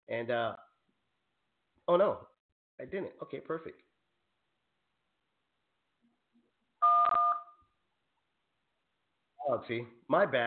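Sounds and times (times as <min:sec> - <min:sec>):
speech: 0:00.1 - 0:00.7, 0:01.9 - 0:03.9, 0:09.4 - 0:10.4
telephone dialing tones: 0:06.8 - 0:07.5.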